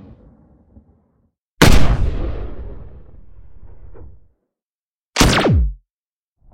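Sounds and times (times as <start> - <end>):
gun sound effects: 1.6 - 2.2, 5.2 - 5.8.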